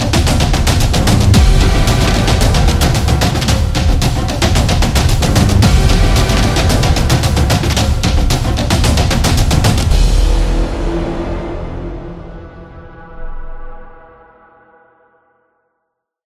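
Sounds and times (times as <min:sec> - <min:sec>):
soccer drums: 0:00.0 - 0:11.0.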